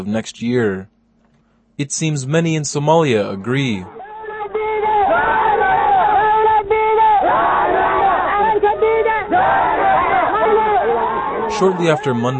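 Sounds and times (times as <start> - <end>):
speech: 0.0 - 0.9, 1.8 - 4.0, 11.5 - 12.3
crowd of Mogadishu residents rallying in support of the prime minister: 3.8 - 12.3.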